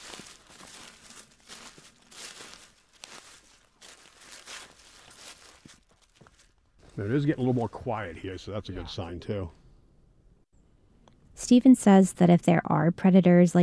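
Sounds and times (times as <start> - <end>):
footsteps crunching through the woods over dry forest floor: 0.0 - 7.7
speech: 7.0 - 9.6, 11.5 - 13.6.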